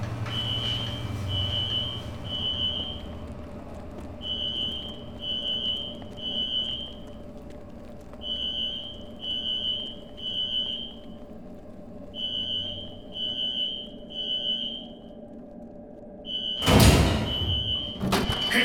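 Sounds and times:
building fire alarm ringing: 0:00.1 - 0:03.3, 0:04.2 - 0:07.1, 0:08.2 - 0:11.1, 0:12.1 - 0:15.1, 0:16.2 - 0:18.5.

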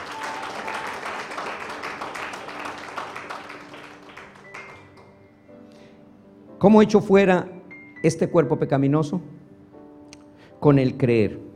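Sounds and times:
congregation applauding for the Lord in a church: 0:00.0 - 0:05.2
speech: 0:06.6 - 0:09.4, 0:10.6 - 0:11.4.

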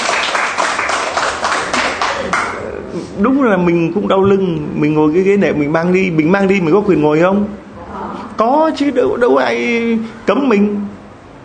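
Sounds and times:
audience applause: 0:00.0 - 0:02.6
speech: 0:03.2 - 0:07.6, 0:08.4 - 0:10.9.

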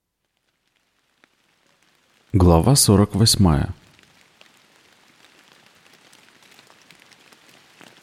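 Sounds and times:
rain falling: 0:00.0 - 0:08.0
speech: 0:02.3 - 0:03.8.

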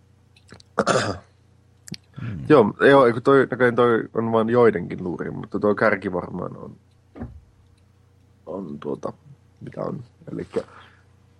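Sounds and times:
speech: 0:00.8 - 0:01.3, 0:02.5 - 0:06.9, 0:08.6 - 0:10.9
person sniffling: 0:02.1 - 0:02.5.

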